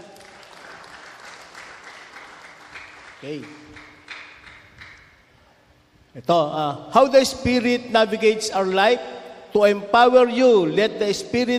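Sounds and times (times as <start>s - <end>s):
congregation clapping for God in a church service: 0.0s - 5.3s
speech: 3.2s - 3.9s, 6.1s - 11.5s.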